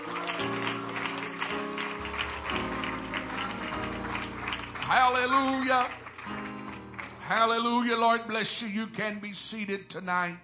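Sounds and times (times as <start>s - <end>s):
crowd clapping hands: 0.0s - 8.2s
sustained organ or keyboard chords: 0.0s - 10.4s
speech: 5.1s - 6.0s, 7.3s - 10.4s.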